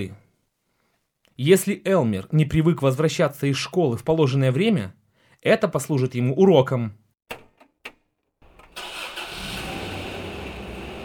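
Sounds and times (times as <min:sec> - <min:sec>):
speech: 0:00.0 - 0:00.2, 0:01.4 - 0:07.4
clicks and thumps: 0:07.3 - 0:08.7
car engine cranking and running: 0:08.4 - 0:11.0.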